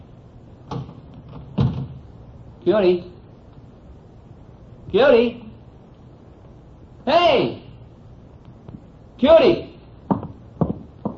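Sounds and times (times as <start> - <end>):
door being opened: 0.6 - 2.0
speech: 2.6 - 3.2, 4.9 - 5.4, 7.1 - 7.6, 9.2 - 9.6.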